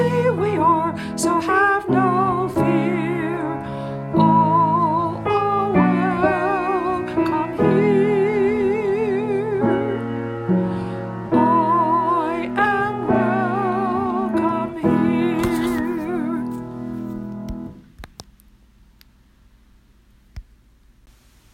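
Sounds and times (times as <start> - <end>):
soprano singing: 0.0 - 16.9.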